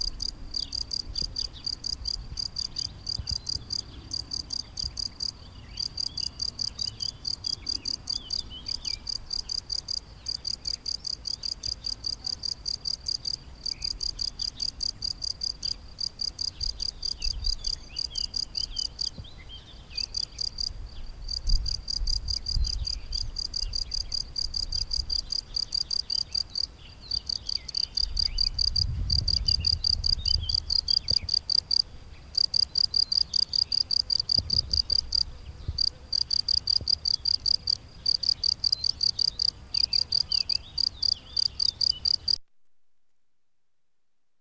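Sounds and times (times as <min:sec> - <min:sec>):
cricket chirping: 0:00.0 - 0:42.4.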